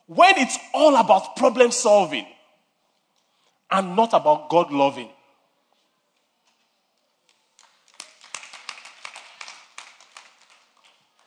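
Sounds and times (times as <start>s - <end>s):
speech: 0.1s - 2.4s, 3.7s - 5.2s
few people clapping: 7.2s - 11.2s.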